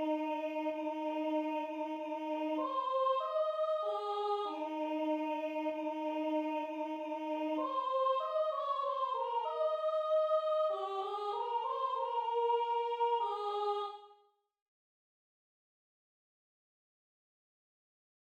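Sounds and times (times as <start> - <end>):
soprano singing: 0.0 - 14.1.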